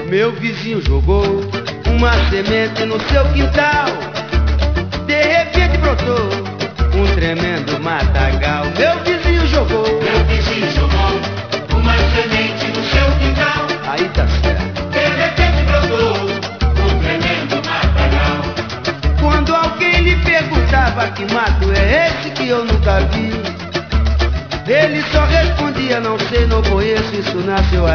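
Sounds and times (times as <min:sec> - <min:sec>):
music: 0:00.0 - 0:27.9.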